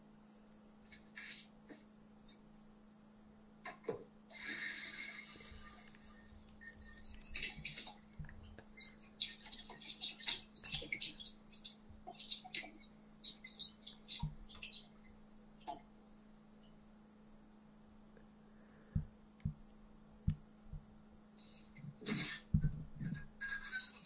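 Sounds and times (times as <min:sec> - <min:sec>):
constant low hum: 0:00.0 - 0:24.0
water splashing as someone washes their face: 0:08.8 - 0:14.7.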